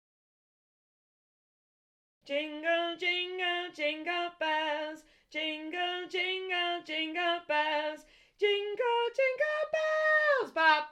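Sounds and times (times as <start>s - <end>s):
soprano singing: 2.2s - 10.9s.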